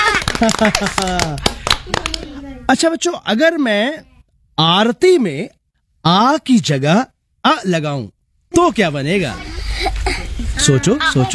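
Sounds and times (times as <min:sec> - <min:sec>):
laughter: 0:00.0 - 0:02.6, 0:09.2 - 0:11.3
children clapping: 0:00.0 - 0:02.7
speech: 0:00.4 - 0:10.0, 0:10.6 - 0:11.3.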